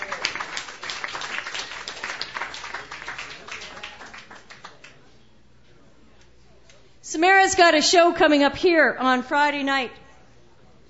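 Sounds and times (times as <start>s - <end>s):
audience applause: 0.0s - 4.9s
speech: 7.1s - 10.0s.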